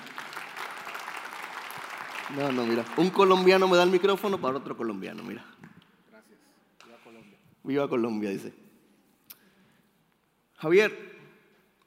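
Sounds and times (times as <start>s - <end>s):
audience applause: 0.0s - 4.2s
speech: 2.3s - 5.6s, 7.7s - 8.6s, 10.6s - 11.1s.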